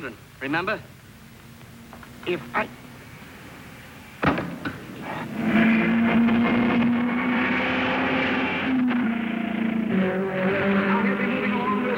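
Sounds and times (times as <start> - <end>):
speech: 0.0 - 0.9, 2.2 - 2.8
race car engine of the Stanley Special car number 6 on a speedway: 0.6 - 11.9
sharp knocks: 4.2 - 4.9.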